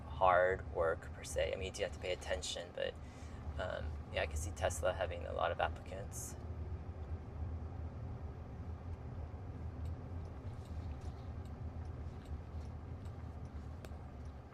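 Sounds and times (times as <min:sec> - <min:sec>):
road and cabin noise inside a moving Waymo driverless car: 0:00.0 - 0:14.5
speech: 0:00.2 - 0:06.4
faint ticks: 0:09.8 - 0:14.5.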